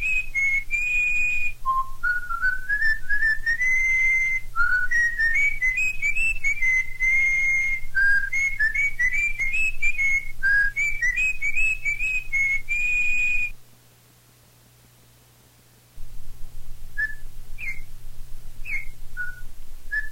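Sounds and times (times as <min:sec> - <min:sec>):
corrupião bird singing: 0:00.0 - 0:13.6, 0:17.0 - 0:17.9, 0:18.6 - 0:20.1.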